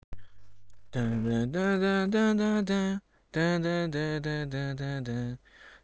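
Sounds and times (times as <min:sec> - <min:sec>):
person singing: 0:00.9 - 0:05.4.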